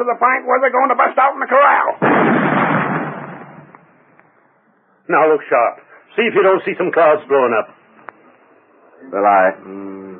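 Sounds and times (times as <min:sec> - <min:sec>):
speech: 0:00.0 - 0:02.8, 0:05.1 - 0:07.8, 0:09.0 - 0:10.0
cannon firing: 0:02.0 - 0:04.0.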